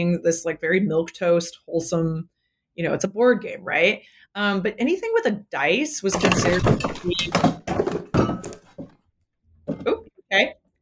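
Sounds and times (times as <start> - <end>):
speech: 0.0 - 7.6
heavy thunks and clattering crash: 6.1 - 9.0.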